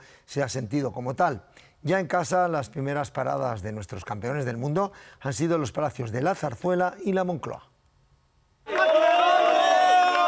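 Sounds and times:
speech: 0:00.3 - 0:07.7
palace staff cheering and applauding at Zarzuela Palace: 0:08.7 - 0:10.2.

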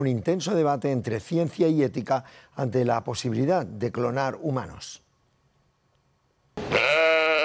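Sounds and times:
speech: 0:00.0 - 0:05.0
sheep bleating: 0:06.6 - 0:07.4.

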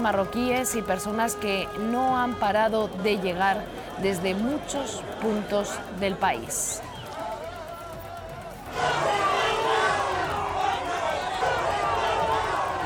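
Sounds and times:
speech: 0:00.0 - 0:06.9
murmur of voices: 0:00.0 - 0:12.8
crowd shouting and insulting: 0:03.6 - 0:12.8.

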